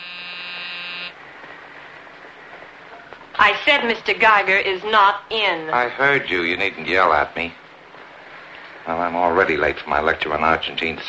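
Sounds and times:
door buzzer: 0:00.0 - 0:01.2
speech: 0:03.4 - 0:07.6, 0:08.9 - 0:11.0.

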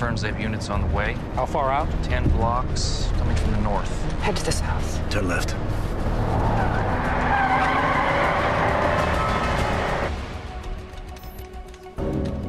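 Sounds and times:
speech: 0:00.0 - 0:06.4
car engine roaring: 0:00.7 - 0:10.3
car tires screeching while swerving: 0:05.5 - 0:10.1.

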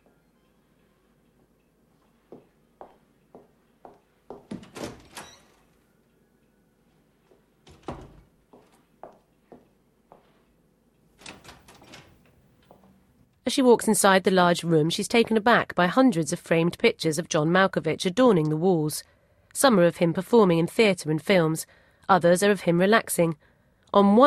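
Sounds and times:
door opening: 0:04.4 - 0:05.8, 0:07.6 - 0:08.3, 0:11.1 - 0:13.0
speech: 0:13.5 - 0:24.2.

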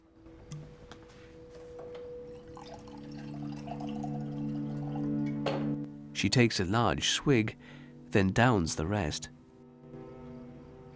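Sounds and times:
wine poured into a glass: 0:02.2 - 0:05.4
speech: 0:06.2 - 0:09.4.

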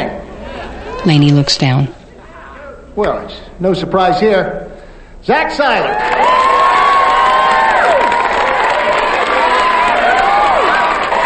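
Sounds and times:
speech: 0:01.0 - 0:02.0, 0:03.0 - 0:06.4
crowd roaring applause: 0:05.8 - 0:11.2.

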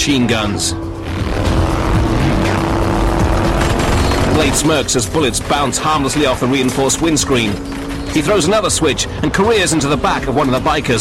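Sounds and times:
speech: 0:00.0 - 0:01.6, 0:04.4 - 0:10.9
jet blasting from car: 0:01.2 - 0:07.2.

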